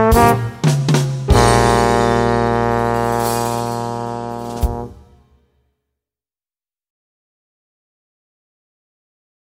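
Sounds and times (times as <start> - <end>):
jazz trombone with soloist: 0.0 - 5.2.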